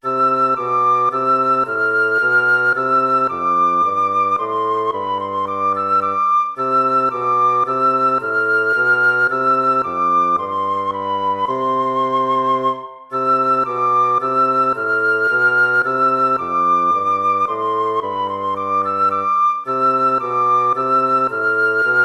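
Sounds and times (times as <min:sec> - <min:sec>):
minuet: 0:00.0 - 0:22.0.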